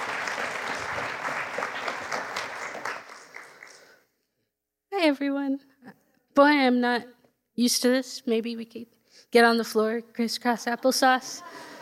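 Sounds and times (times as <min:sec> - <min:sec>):
audience applause welcoming a speaker: 0:00.0 - 0:04.0
speech: 0:05.1 - 0:05.7, 0:06.4 - 0:11.8.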